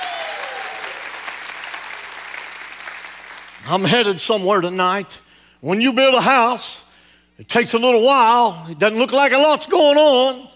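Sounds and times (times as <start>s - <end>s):
shouts of praise: 0.0s - 1.1s
audience applause: 0.0s - 3.6s
speech: 3.6s - 10.5s.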